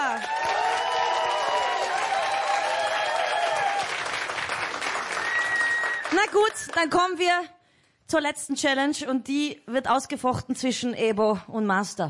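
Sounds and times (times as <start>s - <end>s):
audience applause: 0.0s - 6.9s
crowd cheering: 0.0s - 6.9s
whistles: 5.2s - 6.1s
speech: 6.1s - 12.0s.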